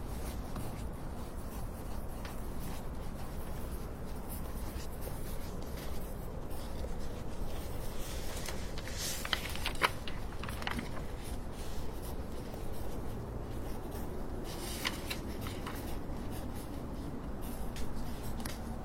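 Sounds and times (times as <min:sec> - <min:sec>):
crisp writing sounds: 0:00.0 - 0:18.8.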